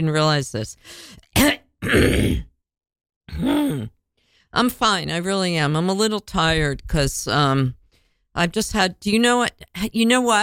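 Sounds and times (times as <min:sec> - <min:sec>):
speech: 0:00.0 - 0:02.5, 0:03.3 - 0:07.8, 0:08.4 - 0:10.4
person clearing throat: 0:01.4 - 0:02.5, 0:03.3 - 0:03.9.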